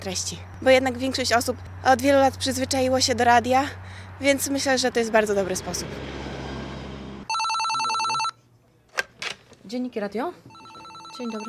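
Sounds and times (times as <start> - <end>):
speech: 0.0 - 6.3, 9.7 - 10.6, 11.2 - 11.4
telephone ringing: 7.3 - 8.4, 10.5 - 11.4.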